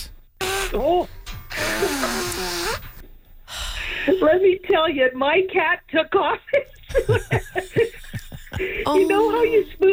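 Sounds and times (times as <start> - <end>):
nose blowing: 0.0 - 0.8, 1.5 - 3.0
speech: 4.2 - 7.9, 8.6 - 9.9
laughter: 6.6 - 9.6.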